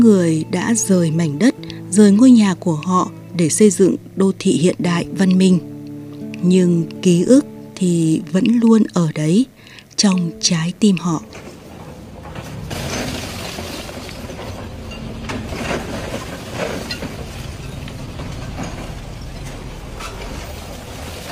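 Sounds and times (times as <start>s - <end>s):
speech: 0.0s - 5.7s, 6.4s - 11.4s
excavators and cranes rumbling at a house demolition site in Hanoi: 0.0s - 8.6s, 10.3s - 21.3s
clanks and knocks at a demolition site: 11.2s - 21.3s.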